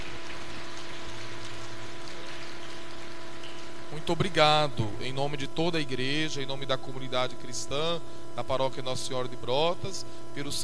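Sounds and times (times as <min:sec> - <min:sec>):
audience applauding: 0:00.0 - 0:04.2
speech: 0:04.0 - 0:10.6.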